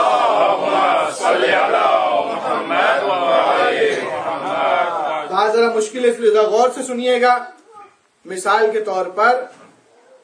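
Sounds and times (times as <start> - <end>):
large crowd chanting salawat in unison: 0.0 - 5.5
speech: 5.6 - 7.6, 8.2 - 9.6.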